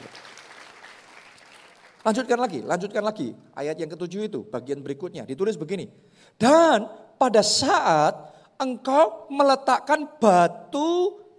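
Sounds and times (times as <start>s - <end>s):
audience applauding: 0.0s - 2.2s
speech: 2.0s - 11.2s.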